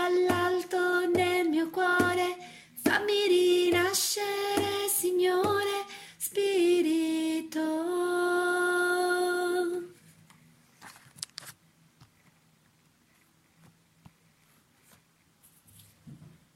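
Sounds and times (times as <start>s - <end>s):
soprano voices singing: 0.0s - 9.9s.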